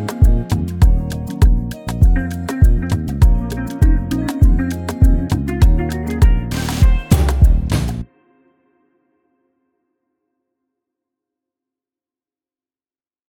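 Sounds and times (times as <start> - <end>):
afrobeat music: 0.0 - 8.1.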